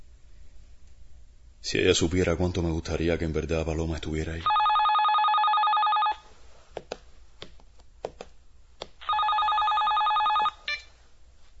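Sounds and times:
speech: 1.6s - 4.6s
telephone ringing: 4.5s - 6.2s, 9.0s - 10.9s.

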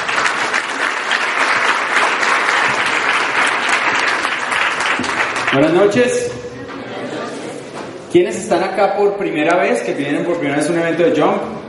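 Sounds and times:
audience applause: 0.0s - 6.0s
speech: 5.5s - 6.4s, 8.1s - 11.6s.

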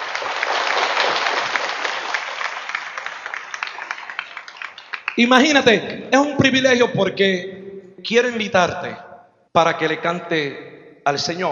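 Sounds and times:
audience applause: 0.0s - 5.6s
speech: 5.2s - 11.5s.

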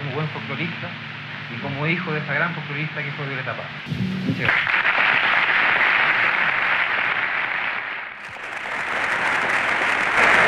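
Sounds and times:
speech: 0.2s - 5.0s
standing ovation applause: 4.4s - 10.4s.

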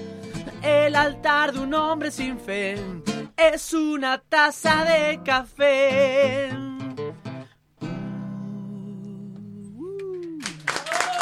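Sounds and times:
speech: 0.6s - 6.6s
applause after a song: 10.4s - 11.2s.

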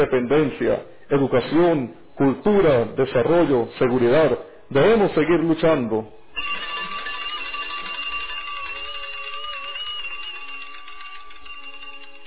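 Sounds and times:
speech: 0.0s - 6.6s
school bell ringing: 6.3s - 12.2s.

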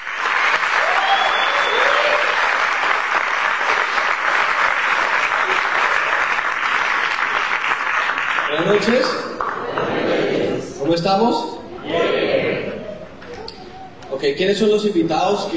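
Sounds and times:
crowd applause: 0.0s - 10.6s
faint whistles and cheers: 0.7s - 2.4s
speech: 8.7s - 9.3s, 10.9s - 11.6s, 14.2s - 15.5s.

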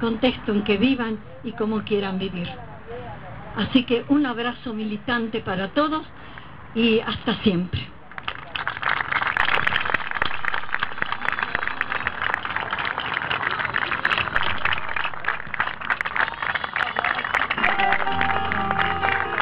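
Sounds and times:
speech: 0.0s - 2.7s, 3.6s - 6.2s, 6.8s - 7.9s
crowd applauding: 8.1s - 19.4s.

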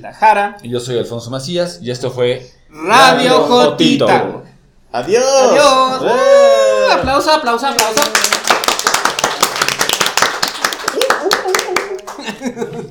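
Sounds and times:
speech: 0.0s - 8.4s, 12.3s - 12.8s
applause: 7.8s - 12.3s.

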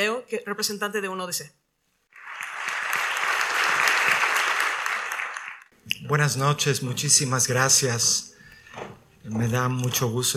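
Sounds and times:
speech: 0.0s - 1.6s, 5.9s - 10.3s
audience applause: 2.1s - 5.7s.

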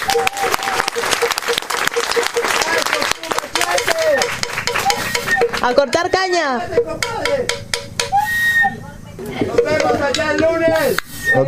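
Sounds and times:
faint voices and whoops: 0.0s - 1.1s
crowd applause: 0.0s - 5.7s
speech: 5.6s - 7.6s, 9.4s - 11.4s.

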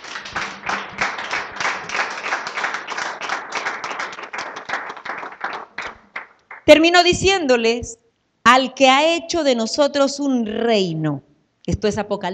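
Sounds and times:
crowd clapping: 0.0s - 6.7s
speech: 6.7s - 12.3s.

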